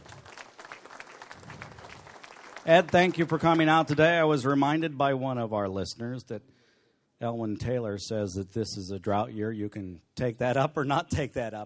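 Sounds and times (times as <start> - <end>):
audience applauding a guest at a live event: 0.0 - 4.0
speech: 2.6 - 6.5, 7.2 - 11.6.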